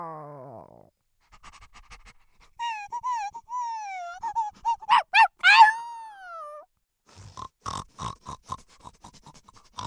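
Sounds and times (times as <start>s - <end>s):
animation women creature voice: 2.6s - 6.6s.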